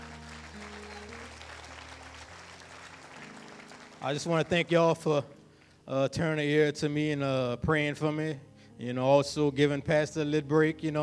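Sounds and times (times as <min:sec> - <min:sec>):
audience clapping: 0:00.0 - 0:05.8
speech: 0:04.0 - 0:11.0.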